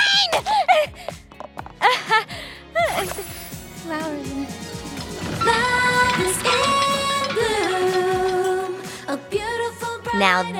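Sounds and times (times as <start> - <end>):
laughter: 0.2 - 1.1, 1.8 - 3.3
a cappella singing: 3.8 - 10.5.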